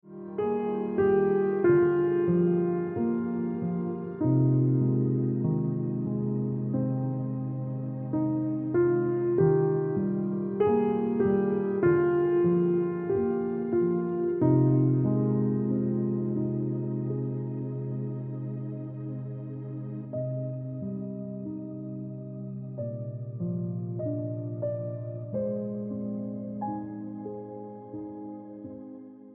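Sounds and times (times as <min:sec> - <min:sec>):
piano music: 0:00.0 - 0:29.3.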